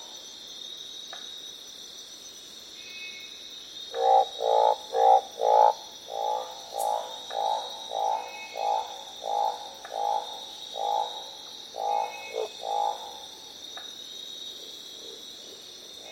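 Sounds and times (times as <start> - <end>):
Northern barred frog croaking: 3.9 - 13.5.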